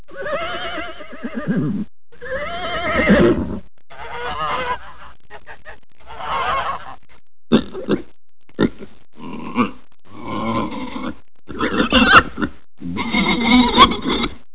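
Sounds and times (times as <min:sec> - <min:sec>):
farm animals: 0:00.1 - 0:14.4.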